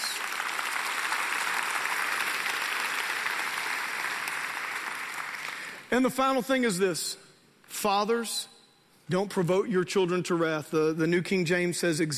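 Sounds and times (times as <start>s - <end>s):
audience clapping: 0.0s - 5.9s
speech: 5.9s - 8.5s, 9.1s - 12.1s.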